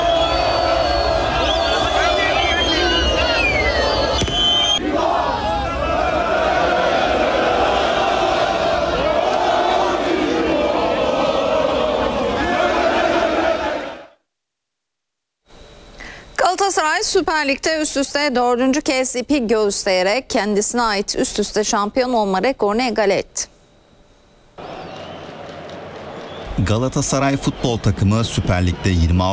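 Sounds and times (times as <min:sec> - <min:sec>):
football fans singing championship songs in European cities: 0:00.0 - 0:14.2, 0:24.6 - 0:29.3
speech: 0:17.1 - 0:23.5, 0:26.6 - 0:29.3.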